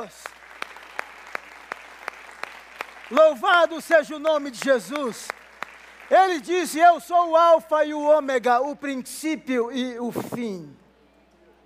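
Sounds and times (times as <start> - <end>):
speech: 0.0 - 0.4, 3.1 - 5.4, 6.1 - 10.8
audience applauding: 0.0 - 6.9.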